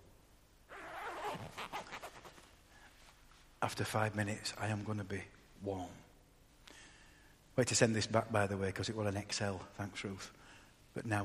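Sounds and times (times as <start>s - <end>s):
coat zipper pulled up: 0.7s - 2.5s
speech: 3.6s - 6.0s, 7.6s - 10.4s, 11.0s - 11.2s.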